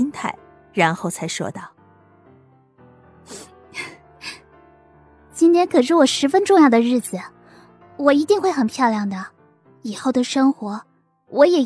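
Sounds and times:
speech: 0:00.0 - 0:01.8, 0:03.3 - 0:03.9, 0:05.4 - 0:07.4, 0:08.0 - 0:11.6
sniffing: 0:03.3 - 0:04.4.

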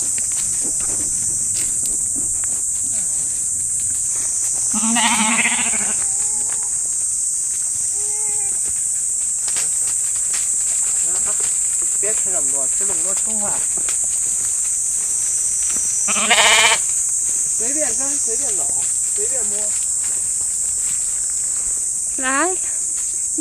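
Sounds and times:
steady high insect chirring: 0:00.0 - 0:23.3
nasal bleats from the flock: 0:04.7 - 0:06.6, 0:16.1 - 0:16.9
speech: 0:04.8 - 0:05.8, 0:12.8 - 0:13.9, 0:16.1 - 0:16.7, 0:17.8 - 0:19.9, 0:22.2 - 0:22.7.

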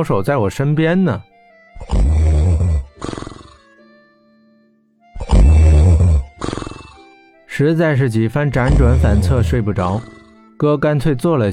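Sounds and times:
speech: 0:00.0 - 0:02.0, 0:03.0 - 0:03.2, 0:07.6 - 0:11.5
loud snoring: 0:01.8 - 0:03.7, 0:05.2 - 0:07.0, 0:08.6 - 0:10.4.

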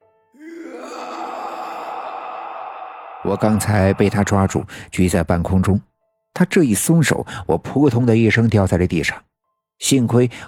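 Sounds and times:
heart-rending howl: 0:00.4 - 0:04.6
speech: 0:03.3 - 0:10.4.

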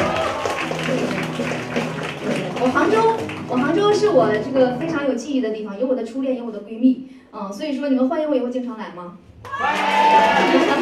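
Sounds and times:
audience applause: 0:00.0 - 0:04.1, 0:09.4 - 0:10.8
speech: 0:02.6 - 0:10.8.

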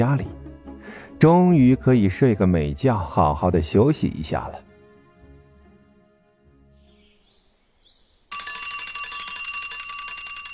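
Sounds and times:
speech: 0:00.0 - 0:00.4, 0:01.2 - 0:04.6
morning alarm clock metallic bell ringing: 0:08.3 - 0:10.5.

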